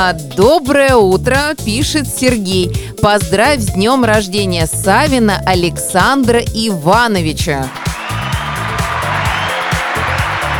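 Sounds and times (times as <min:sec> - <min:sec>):
speech: 0:00.0 - 0:07.9
rhythmic low musical bass line: 0:00.0 - 0:10.5
crowd applause: 0:07.7 - 0:10.5.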